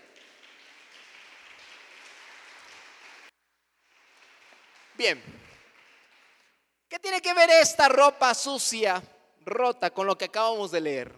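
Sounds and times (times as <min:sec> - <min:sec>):
applause: 0:00.0 - 0:06.7
speech: 0:05.0 - 0:05.5, 0:07.0 - 0:11.1.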